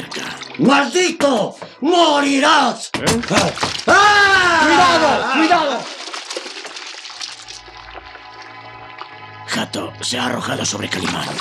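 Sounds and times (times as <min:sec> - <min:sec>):
splash of a wrestler plunging into a dark pond: 0:00.0 - 0:01.0, 0:03.0 - 0:11.3
speech: 0:00.6 - 0:06.0, 0:09.5 - 0:11.3.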